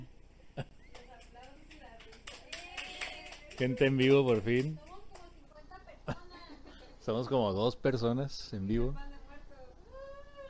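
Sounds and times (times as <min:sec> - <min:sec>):
small studio audience clapping: 0:00.8 - 0:05.4
speech: 0:03.6 - 0:04.8, 0:07.1 - 0:09.1.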